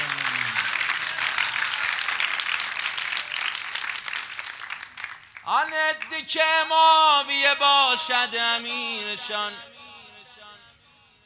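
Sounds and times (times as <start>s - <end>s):
crowd applause in honour of Imam Ali: 0.0s - 5.4s
speech: 5.5s - 9.8s.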